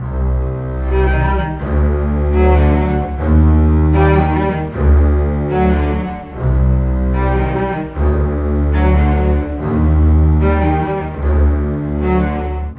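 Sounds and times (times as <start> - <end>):
cinematic orchestral bass and cello: 0.0 - 12.7.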